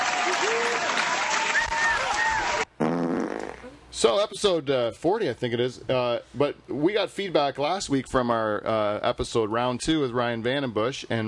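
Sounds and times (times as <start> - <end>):
applause: 0.0 - 2.7
speech: 4.0 - 11.2.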